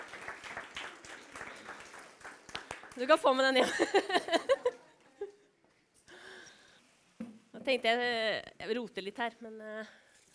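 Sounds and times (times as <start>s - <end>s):
audience applause: 0.0s - 3.1s
speech: 3.0s - 4.8s, 7.7s - 10.0s
laughter: 3.6s - 5.4s.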